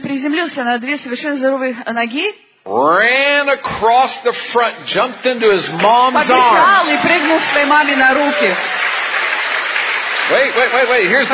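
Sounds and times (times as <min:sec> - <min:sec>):
speech: 0:00.2 - 0:08.9, 0:10.3 - 0:11.3
audience applause during a story at a talk: 0:05.3 - 0:11.3.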